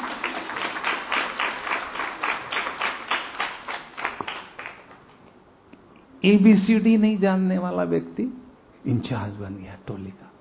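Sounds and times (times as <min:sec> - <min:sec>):
audience clapping: 0:00.0 - 0:05.2
speech: 0:06.2 - 0:10.3.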